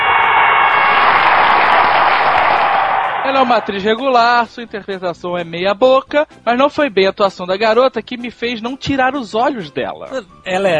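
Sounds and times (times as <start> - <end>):
applause: 0.0 - 4.1
speech: 3.4 - 10.7.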